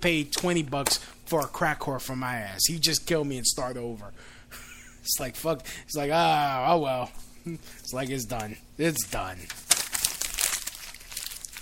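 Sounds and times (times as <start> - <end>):
speech: 0.0 - 9.7
sheets of paper crumpled in the hands: 8.9 - 11.6.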